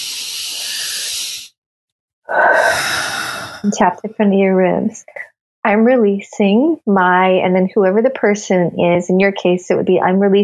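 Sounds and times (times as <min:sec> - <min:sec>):
big deep breath during a guided emotional tapping exercise: 0:00.0 - 0:01.5, 0:02.3 - 0:03.7
speech: 0:03.6 - 0:10.4.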